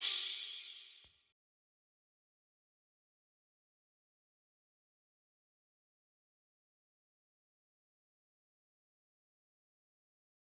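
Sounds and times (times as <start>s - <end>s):
crash: 0.0s - 1.0s.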